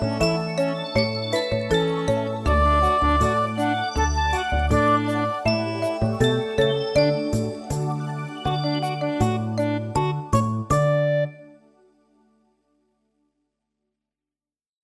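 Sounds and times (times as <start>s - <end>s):
melody: 0.0s - 11.8s.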